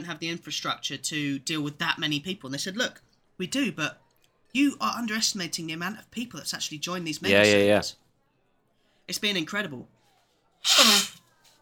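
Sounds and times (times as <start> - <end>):
speech: 0.0 - 8.0, 9.1 - 10.0, 10.6 - 11.1
nose blowing: 10.6 - 11.2.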